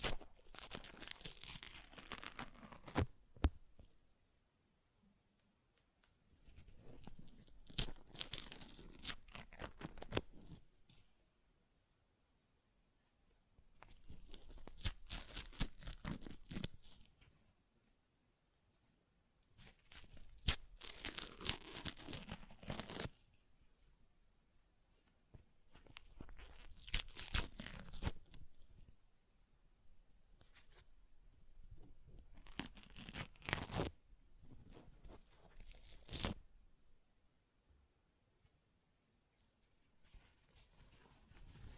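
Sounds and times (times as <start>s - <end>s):
paper ripping and tearing: 0.0s - 3.1s, 7.0s - 10.6s, 14.1s - 16.8s, 19.6s - 23.2s, 26.0s - 28.4s, 32.4s - 34.0s, 35.2s - 36.4s.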